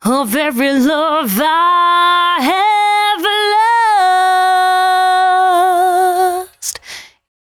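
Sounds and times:
velvet vocal in C sharp at 113 bpm: 0.0s - 7.0s.

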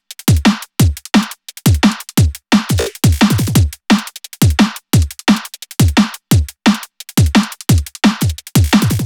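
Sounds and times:
drum loop at 174 BPM: 0.3s - 5.1s, 7.2s - 9.0s.

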